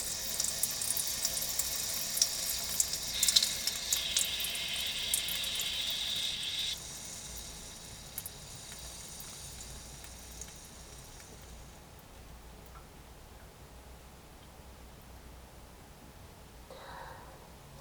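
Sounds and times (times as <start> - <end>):
person urinating after drinking coffee: 0.0 - 11.7.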